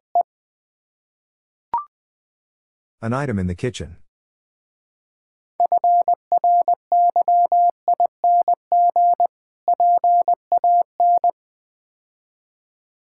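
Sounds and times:
speech: 0:03.0 - 0:04.0
Morse code tones at about 20 words per minute: 0:05.6 - 0:11.3.

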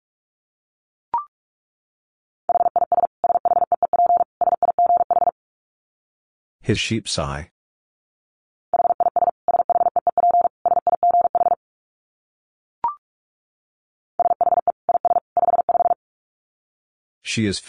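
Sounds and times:
Morse code tones at 45 wpm: 0:02.5 - 0:05.3, 0:08.8 - 0:11.6, 0:14.2 - 0:16.0
speech: 0:06.7 - 0:07.5, 0:17.3 - 0:17.6.

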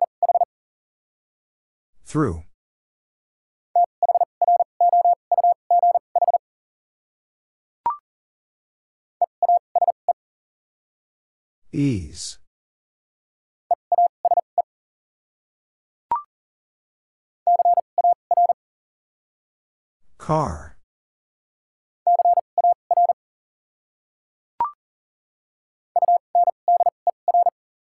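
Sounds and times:
Morse code tones at 40 words per minute: 0:00.2 - 0:00.5, 0:03.8 - 0:06.4, 0:09.3 - 0:10.0, 0:13.9 - 0:14.4, 0:17.5 - 0:18.6, 0:22.1 - 0:23.2, 0:26.0 - 0:27.5
speech: 0:02.1 - 0:02.5, 0:11.8 - 0:12.4, 0:20.3 - 0:20.7.

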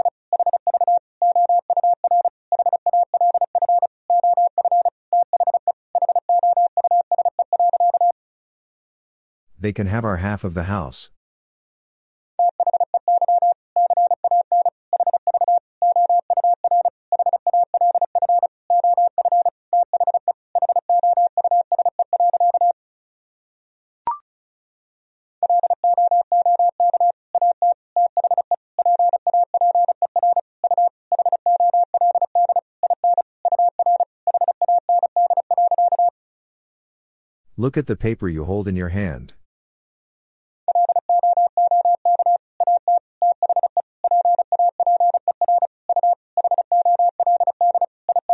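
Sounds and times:
Morse code beeps at 35 words per minute: 0:00.0 - 0:08.2, 0:12.4 - 0:22.8, 0:25.4 - 0:36.1, 0:40.7 - 0:48.3
speech: 0:09.6 - 0:11.2, 0:37.6 - 0:39.4.

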